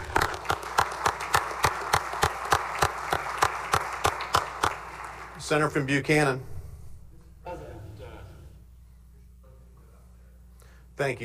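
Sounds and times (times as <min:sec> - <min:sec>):
applause for welcomed guests: 0:00.0 - 0:05.8
speech: 0:05.5 - 0:06.5, 0:11.0 - 0:11.2.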